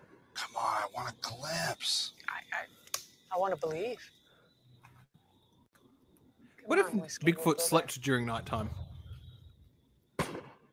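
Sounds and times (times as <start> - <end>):
speech: 0.9 - 4.2, 6.7 - 8.8
distant gunshot: 10.2 - 10.7.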